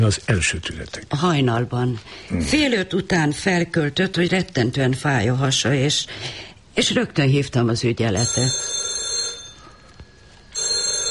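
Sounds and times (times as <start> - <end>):
speech: 0.0 - 8.8
telephone bell ringing: 8.2 - 9.9, 10.5 - 11.0.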